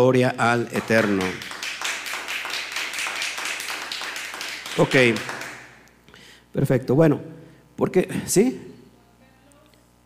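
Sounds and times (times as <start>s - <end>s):
speech: 0.0s - 1.5s, 4.8s - 5.4s, 6.6s - 8.7s
applause: 0.4s - 5.8s.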